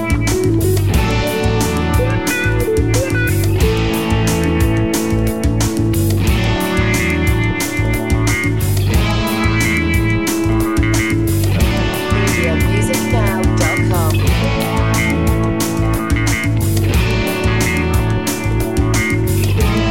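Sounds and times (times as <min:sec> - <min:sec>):
on-hold music: 0:00.0 - 0:19.8.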